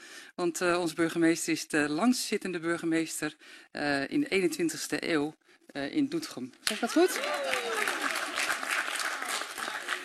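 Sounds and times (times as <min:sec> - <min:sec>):
speech: 0:00.4 - 0:07.4
council audience applause in Doetinchem: 0:06.8 - 0:10.0.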